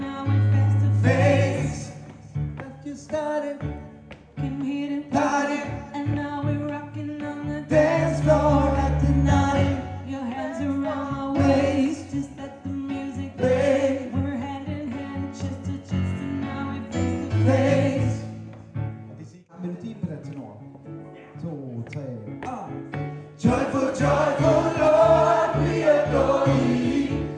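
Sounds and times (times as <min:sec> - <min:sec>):
tenor singing: 0:00.0 - 0:03.8, 0:04.4 - 0:18.5, 0:22.4 - 0:27.3
choir singing: 0:00.8 - 0:02.0, 0:05.1 - 0:05.8, 0:07.7 - 0:12.4, 0:13.2 - 0:14.4, 0:17.3 - 0:18.4, 0:23.4 - 0:27.3.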